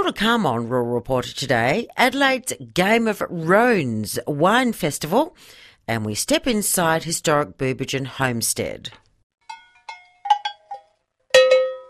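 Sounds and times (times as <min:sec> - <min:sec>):
speech: 0:00.0 - 0:09.0
metal animal bells clanking: 0:09.4 - 0:11.8.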